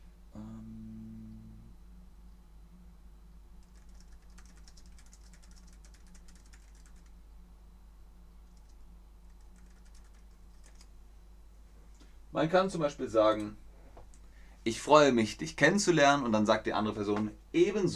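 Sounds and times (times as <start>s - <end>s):
steady low hum: 0.0s - 17.9s
typing on a computer keyboard: 3.6s - 7.1s, 8.5s - 10.9s
speech: 12.4s - 13.6s, 14.6s - 17.9s.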